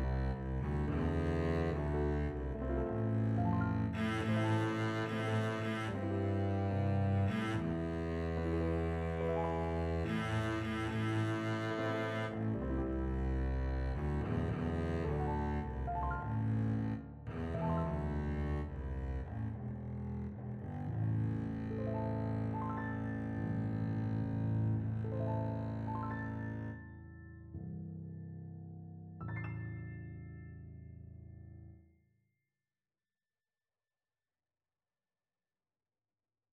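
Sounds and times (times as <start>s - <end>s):
double bass playing: 0.0s - 27.9s.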